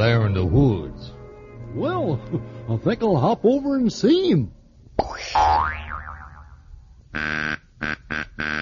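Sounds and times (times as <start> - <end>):
speech: 0.0 - 5.8
springy cartoon boing: 5.0 - 6.6.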